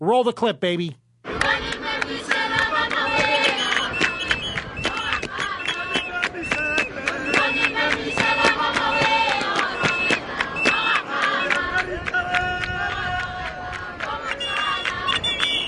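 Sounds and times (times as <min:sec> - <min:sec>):
speech: 0:00.0 - 0:02.3
crowd in Botswana chanting in unison to greet Michelle Obama: 0:01.3 - 0:15.5.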